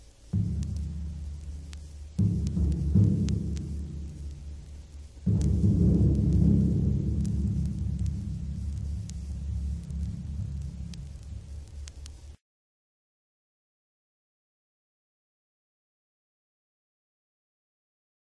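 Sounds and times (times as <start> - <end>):
bass drum: 0.0 - 12.4.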